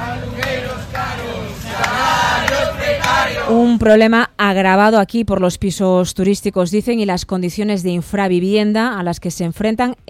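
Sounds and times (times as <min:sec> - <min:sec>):
protesters chanting slogans in street demonstration: 0:00.0 - 0:03.8
speech: 0:03.5 - 0:10.0.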